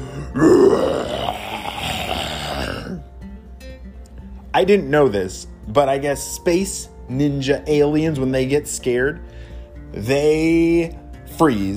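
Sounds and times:
voice imitating a ginormous roar: 0.0 - 3.0
speech: 0.3 - 1.2, 4.6 - 11.7.

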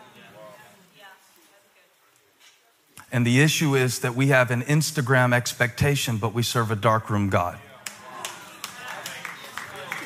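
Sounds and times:
speech: 3.1 - 7.7
few people clapping: 7.8 - 10.0.

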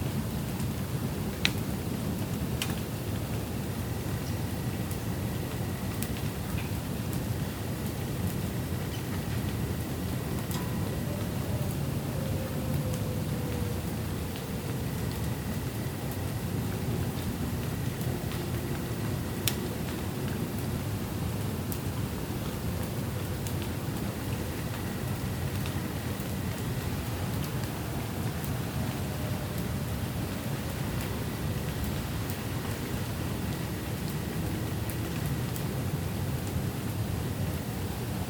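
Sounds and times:
thunderstorm rain roaring in Grand Rapids, Michigan: 0.0 - 38.2.

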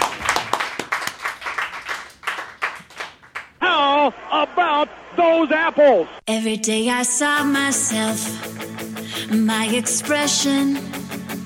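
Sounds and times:
audience applause: 0.0 - 3.6
speech: 4.3 - 11.0.

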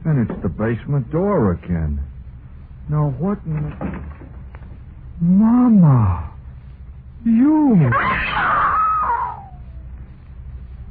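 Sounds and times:
speech: 0.1 - 2.1, 2.9 - 4.2, 5.2 - 6.3, 7.2 - 8.8
person screaming in fright: 7.8 - 9.7.

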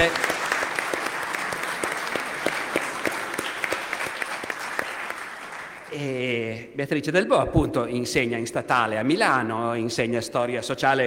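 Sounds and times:
speech: 0.0 - 0.3, 6.0 - 11.0
audience applause: 0.0 - 6.0.

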